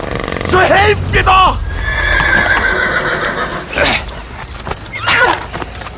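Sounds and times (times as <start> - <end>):
speech: 0.5 - 1.6
black horse's hooves striking: 1.8 - 5.9.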